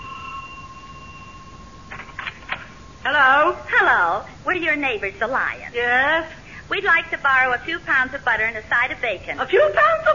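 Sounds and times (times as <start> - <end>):
electric doorbell ringing: 0.0 - 3.5
speech: 3.0 - 10.1.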